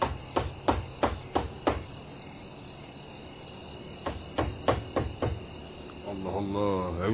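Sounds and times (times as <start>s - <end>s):
knocking on a wooden door: 0.0s - 1.9s, 4.0s - 5.4s
faint steady insect chirr: 0.0s - 7.1s
speech: 6.5s - 7.1s.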